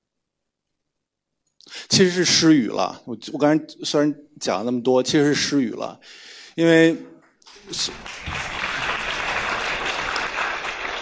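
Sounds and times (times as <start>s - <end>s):
speech: 1.6s - 8.5s
audience applause: 7.5s - 11.0s.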